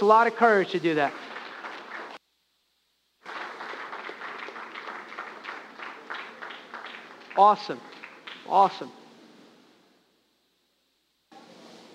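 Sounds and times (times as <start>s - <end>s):
speech: 0.0s - 1.3s, 7.4s - 7.9s, 8.5s - 9.0s
audience applause: 1.0s - 2.2s, 3.2s - 8.8s.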